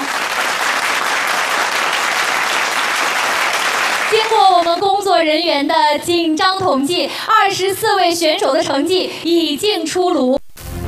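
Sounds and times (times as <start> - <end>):
audience applause: 0.0 - 4.8
speech: 4.4 - 10.4.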